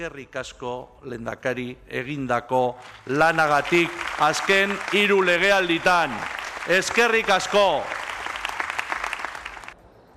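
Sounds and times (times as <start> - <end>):
speech: 0.0 - 8.0
loud applause: 2.8 - 9.8.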